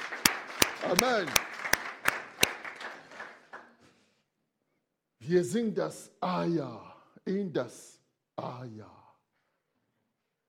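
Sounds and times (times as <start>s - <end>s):
audience clapping: 0.0s - 4.0s
speech: 0.8s - 1.5s, 5.3s - 9.0s.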